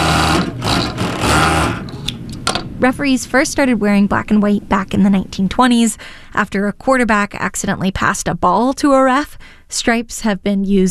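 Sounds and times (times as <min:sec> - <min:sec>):
sewing machine run by a veteran seamstress stitching fabric: 0:00.0 - 0:02.0
speech: 0:02.8 - 0:10.8.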